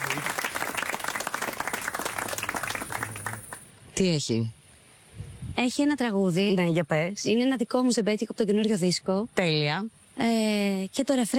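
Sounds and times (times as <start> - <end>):
audience applause: 0.0 - 3.7
speech: 4.0 - 4.6, 5.6 - 11.3.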